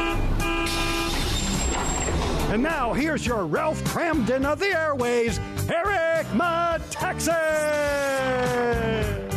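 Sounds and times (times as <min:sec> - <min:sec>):
bus horn blaring: 0:00.0 - 0:01.6
speech: 0:02.6 - 0:09.2.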